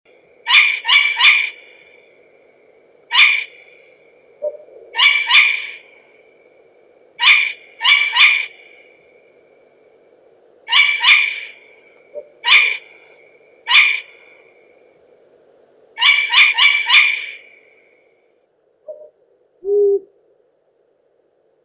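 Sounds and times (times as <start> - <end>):
long-eared owl Asio otus alarm call: 0.4 - 2.2, 3.1 - 6.0, 7.2 - 9.0, 10.7 - 14.4, 16.0 - 17.9.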